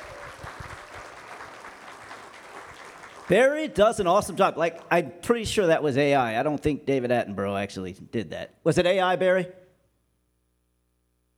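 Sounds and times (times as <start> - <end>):
audience applause: 0.0 - 3.5
speech: 3.3 - 9.6.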